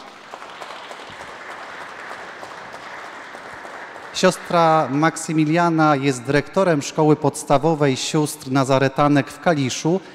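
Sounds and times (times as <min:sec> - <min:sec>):
audience applause: 0:00.0 - 0:06.0
speech: 0:04.2 - 0:10.1.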